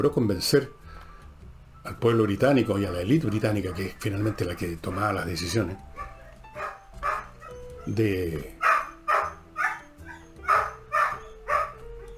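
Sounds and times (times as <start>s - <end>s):
speech: 0.0s - 0.8s, 1.8s - 6.1s, 7.9s - 8.6s
steady noise: 0.0s - 12.1s
dogs barking: 2.9s - 8.0s, 8.6s - 12.1s.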